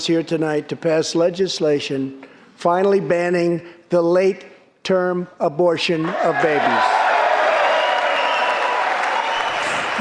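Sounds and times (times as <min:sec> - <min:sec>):
speech: 0:00.0 - 0:07.0
applause in the chamber: 0:07.2 - 0:10.0.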